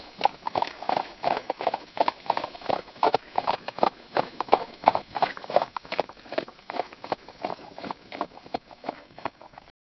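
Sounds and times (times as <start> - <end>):
horses: 0.0 - 9.7.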